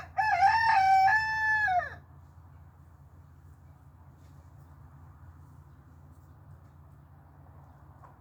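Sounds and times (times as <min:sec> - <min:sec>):
rooster crowing: 0:00.0 - 0:02.0.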